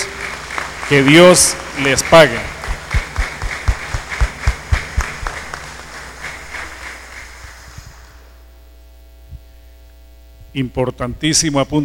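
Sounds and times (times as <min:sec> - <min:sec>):
audience clapping in a rhythmic beat: 0:00.0 - 0:08.3
speech: 0:00.9 - 0:02.6, 0:10.6 - 0:11.8.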